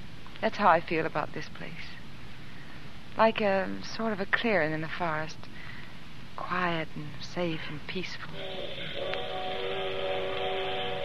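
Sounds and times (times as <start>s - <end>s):
speech: 0.4s - 2.0s, 3.2s - 5.5s, 6.4s - 9.3s
train whistle: 8.3s - 11.0s.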